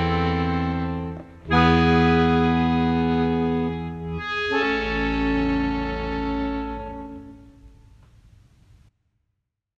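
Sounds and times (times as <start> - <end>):
accordion: 0.0 - 7.8.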